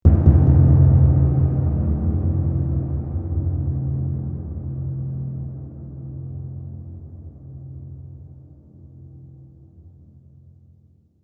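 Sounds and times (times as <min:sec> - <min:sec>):
trailer drum hit: 0:00.0 - 0:05.6.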